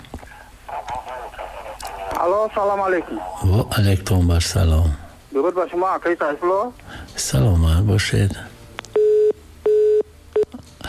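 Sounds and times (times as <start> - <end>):
speech: 2.2 - 8.5
telephone beeps as a call-in line is cut off: 9.0 - 10.5.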